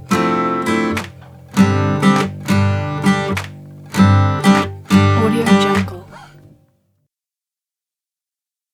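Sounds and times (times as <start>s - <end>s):
acoustic guitar: 0.0s - 6.7s.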